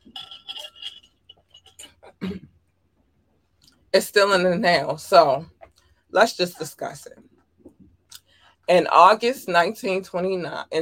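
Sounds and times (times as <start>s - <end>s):
glassware clinking while getting water: 0.0s - 1.9s
speech: 2.2s - 2.5s, 3.9s - 7.3s, 8.7s - 10.8s.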